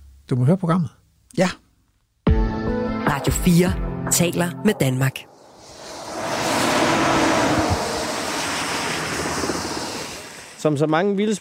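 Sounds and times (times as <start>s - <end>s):
speech: 0.3s - 1.6s, 3.1s - 5.3s, 10.6s - 11.3s
traffic noise from a nearby road: 5.2s - 10.6s.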